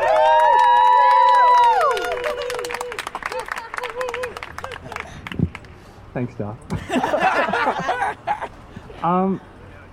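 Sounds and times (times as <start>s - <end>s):
audience cheering and whooping for a comedian at a stand-up show: 0.0s - 5.0s
speech: 6.2s - 7.2s, 9.0s - 9.9s
laughter: 6.7s - 8.5s.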